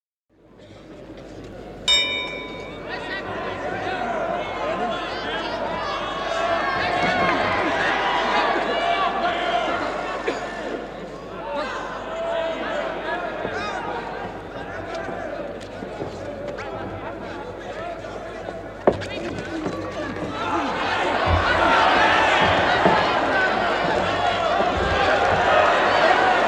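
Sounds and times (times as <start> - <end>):
bell at the Royal Albert Hall: 1.9 - 3.3
enthusiastic crowd at the Royal Albert Hall: 1.9 - 26.4.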